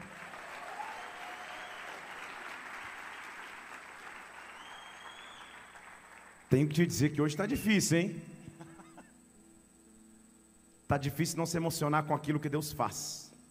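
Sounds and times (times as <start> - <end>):
congregation applauding during a church service in Brasília: 0.0 - 6.8
speech: 6.5 - 8.3, 10.9 - 13.3.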